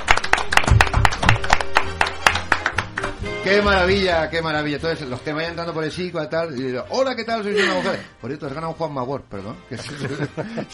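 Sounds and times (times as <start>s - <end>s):
small group applauding: 0.0s - 3.3s
speech: 3.4s - 10.7s
laughter: 7.6s - 8.1s, 9.7s - 10.7s.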